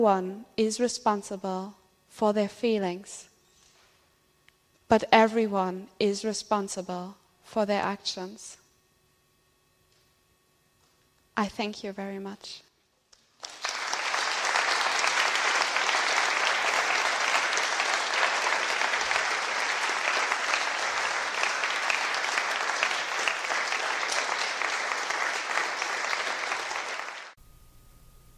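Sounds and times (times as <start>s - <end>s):
speech: 0.0s - 3.3s, 4.9s - 8.6s, 11.4s - 12.6s
loud audience applause from a large crowd: 13.4s - 27.4s.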